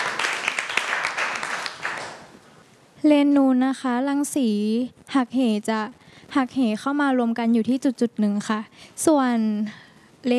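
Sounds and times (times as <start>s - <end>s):
classroom students applauding: 0.0s - 2.3s
speech: 3.0s - 10.3s.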